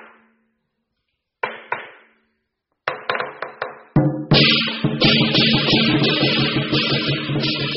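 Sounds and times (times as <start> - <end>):
sharp lion dance percussion strikes: 3.3 - 7.7
lion dance drums and cymbals: 4.0 - 7.7.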